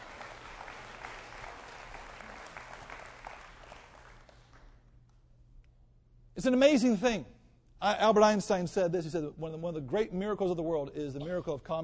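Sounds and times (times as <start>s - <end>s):
audience applause: 0.0s - 4.8s
speech: 6.4s - 11.8s.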